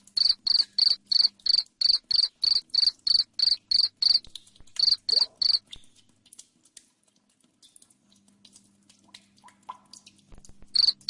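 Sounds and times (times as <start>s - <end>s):
cricket chirps: 0.0s - 5.6s, 10.7s - 11.0s.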